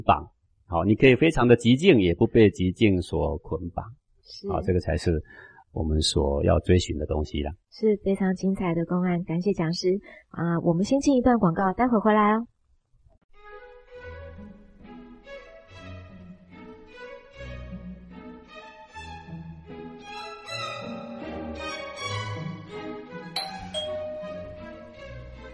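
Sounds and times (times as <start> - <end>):
speech: 0.0 - 12.5
doorbell ringing: 23.4 - 25.1.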